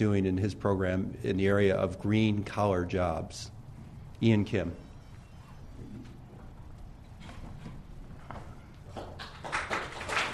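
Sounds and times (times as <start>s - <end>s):
speech: 0.0s - 3.6s, 4.2s - 4.8s
audience clapping: 8.8s - 10.3s.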